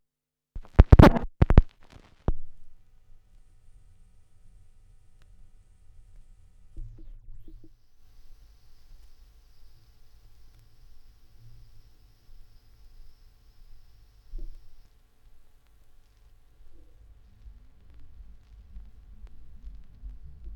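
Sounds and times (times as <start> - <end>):
vinyl record noise: 0.6 - 2.8, 7.4 - 20.5.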